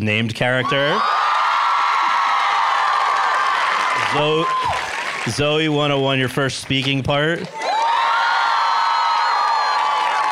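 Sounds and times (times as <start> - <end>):
speech: 0.0 - 1.2, 4.1 - 7.6
high-pitched shrieks and whoops: 0.6 - 4.9, 7.6 - 10.3
audience cheering and applause: 0.6 - 6.8, 7.4 - 10.3.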